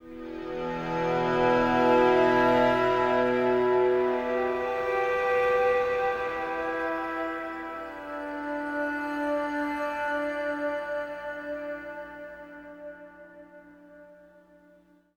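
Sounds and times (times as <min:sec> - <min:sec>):
acoustic drone: 0:00.0 - 0:11.2.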